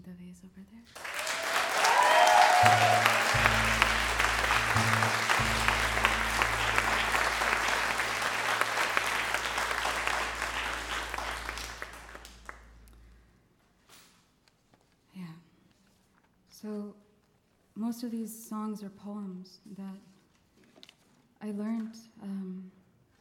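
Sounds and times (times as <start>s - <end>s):
speech: 0.1s - 1.2s, 2.6s - 3.2s, 18.6s - 20.2s, 21.4s - 22.7s
loud audience applause: 0.9s - 12.6s
low steady hum: 2.3s - 13.4s.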